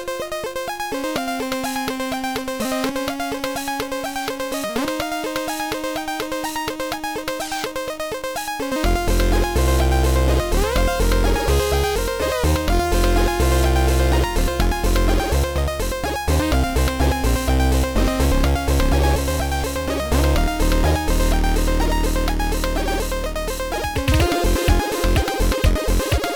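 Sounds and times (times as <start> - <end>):
chiptune music: 0.2 - 26.3.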